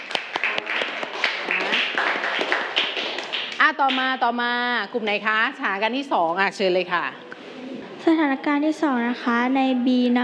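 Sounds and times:
classroom clapping: 0.0s - 4.2s
speech: 3.7s - 7.2s, 8.0s - 10.2s.

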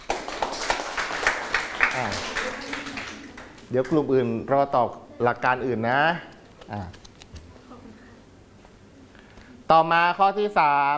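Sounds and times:
classroom clapping: 0.0s - 4.1s
speech: 2.0s - 2.8s, 3.7s - 7.0s, 9.7s - 10.9s.

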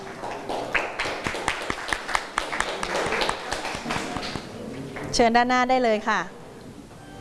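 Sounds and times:
students clapping: 0.0s - 5.1s
speech: 5.2s - 6.4s.

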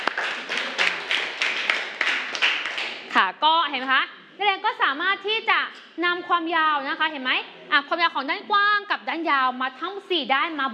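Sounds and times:
classroom students clapping: 0.0s - 3.2s
speech: 3.2s - 10.7s.

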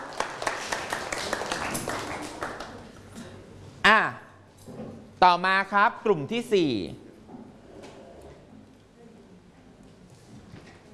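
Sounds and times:
classroom applause for classmates: 0.0s - 3.1s
speech: 5.2s - 7.0s.

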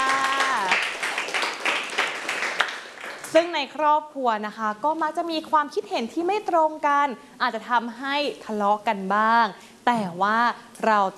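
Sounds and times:
classroom applause for a student group: 0.0s - 3.4s
speech: 3.3s - 11.1s.

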